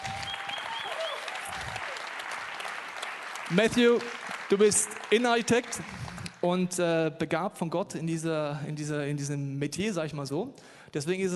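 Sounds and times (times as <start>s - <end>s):
audience applause: 0.0s - 6.4s
speech: 3.5s - 11.3s.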